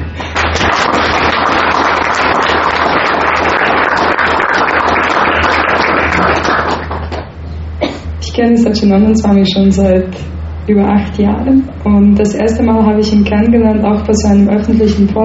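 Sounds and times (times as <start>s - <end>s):
crowd applause: 0.0s - 7.3s
speech: 8.4s - 15.2s.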